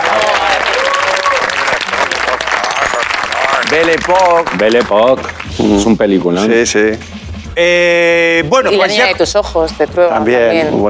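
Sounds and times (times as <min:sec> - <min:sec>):
crowd applauding: 0:00.0 - 0:05.6
speech: 0:03.7 - 0:10.8.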